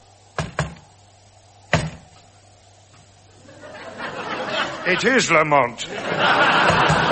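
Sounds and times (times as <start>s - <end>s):
sharp knocks: 0.4s - 0.9s, 1.7s - 2.1s
laughter: 3.4s - 7.1s
speech: 4.9s - 6.9s.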